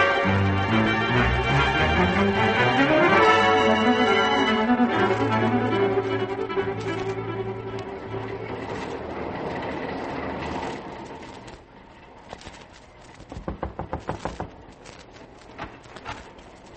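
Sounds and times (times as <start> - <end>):
train running on rails: 0.0 - 16.7.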